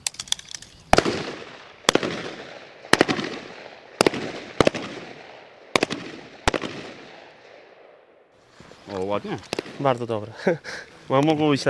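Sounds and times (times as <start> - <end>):
gunshots at a shooting range: 0.9 - 8.0, 9.5 - 10.0
speech: 9.0 - 11.6.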